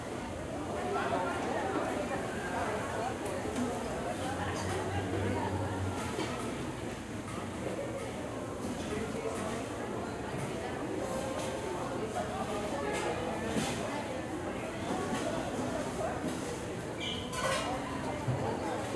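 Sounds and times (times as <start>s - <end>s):
crowd in a shopping mall food court restaurant: 0.0s - 17.0s, 17.6s - 18.9s
restaurant kitchen sounds in a shopping mall food court: 17.1s - 17.8s.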